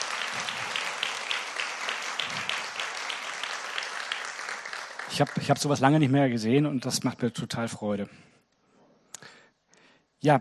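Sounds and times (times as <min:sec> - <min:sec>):
audience applause at a church gathering: 0:00.0 - 0:06.2
speech: 0:05.1 - 0:08.4.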